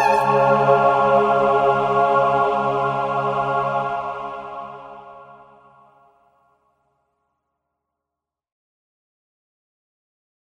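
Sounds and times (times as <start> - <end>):
sopranos singing: 0.0 - 4.8.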